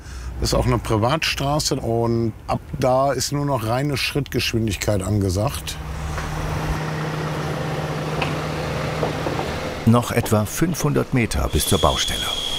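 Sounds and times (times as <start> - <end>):
speech: 0.4 - 5.9, 9.8 - 12.4
heavy truck driving slowly over steel plates: 5.8 - 11.5.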